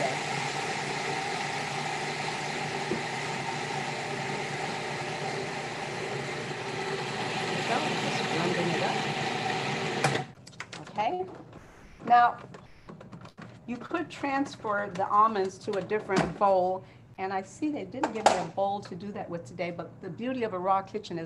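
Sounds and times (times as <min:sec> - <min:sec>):
blender running: 0:00.0 - 0:10.4
speech: 0:12.1 - 0:12.6, 0:13.7 - 0:21.2.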